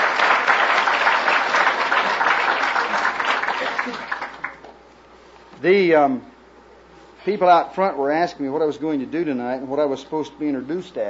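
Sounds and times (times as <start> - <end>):
audience applause: 0.0 - 4.7
speech: 5.6 - 6.3, 7.2 - 11.0.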